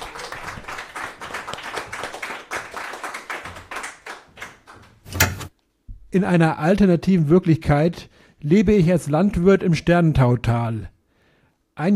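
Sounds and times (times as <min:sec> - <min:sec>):
audience clapping: 0:00.0 - 0:05.1
speech: 0:06.1 - 0:10.9, 0:11.8 - 0:11.9.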